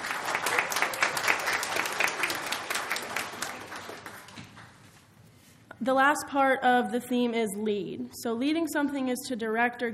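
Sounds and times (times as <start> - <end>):
audience applause: 0.0 - 4.8
speech: 5.8 - 9.9.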